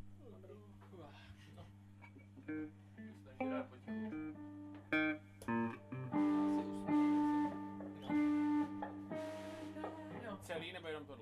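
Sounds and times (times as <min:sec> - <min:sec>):
guitar: 0:02.0 - 0:11.0
person singing: 0:09.1 - 0:10.4.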